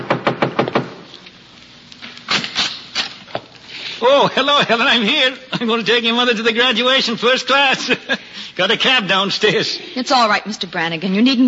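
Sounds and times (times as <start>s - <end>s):
knocking on a door: 0.0s - 0.9s
laughter: 4.0s - 9.8s
speech: 4.0s - 11.4s.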